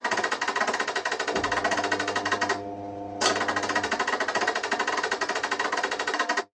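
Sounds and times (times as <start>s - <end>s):
laundry machine: 0.8s - 6.4s.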